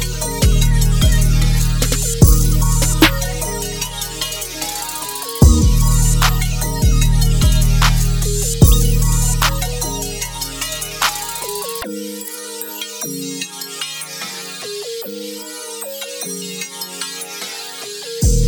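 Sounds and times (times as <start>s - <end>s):
alt trap beat: 0.0s - 11.8s.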